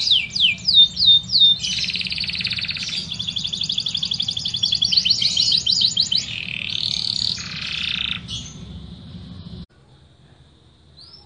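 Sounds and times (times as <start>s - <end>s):
Yorkshire canary singing long vigorous song: 0.0s - 9.7s.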